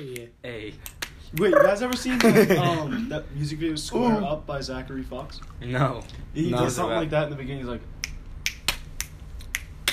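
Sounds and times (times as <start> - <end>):
speech: 0.0 - 8.0
finger snaps: 0.1 - 2.1, 8.0 - 9.9.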